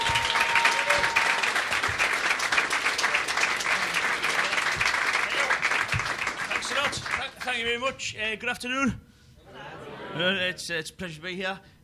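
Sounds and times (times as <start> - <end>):
audience applause welcoming a comedian at the Edinburgh Fringe: 0.0 - 7.6
speech: 7.6 - 9.0, 10.2 - 11.7.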